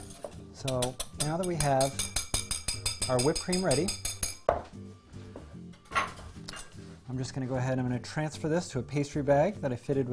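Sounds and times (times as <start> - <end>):
speech: 0.6 - 2.1, 3.1 - 4.1, 7.1 - 10.1
whisk clinking against bowl: 0.6 - 4.4.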